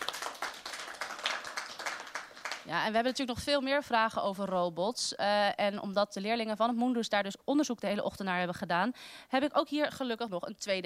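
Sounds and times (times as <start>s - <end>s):
small group clapping for an expert guest: 0.0s - 2.8s
speech: 2.6s - 10.8s.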